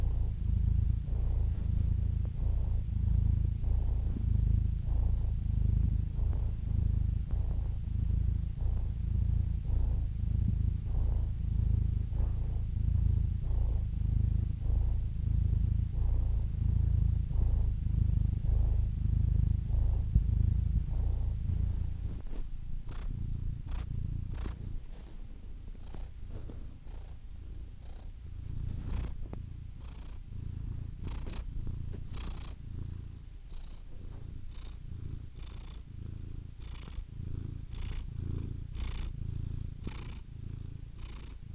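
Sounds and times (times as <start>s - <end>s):
domestic cat purring: 0.0s - 41.5s
short scratchy rustles and taps: 25.8s - 27.1s, 28.6s - 30.1s, 31.0s - 32.5s.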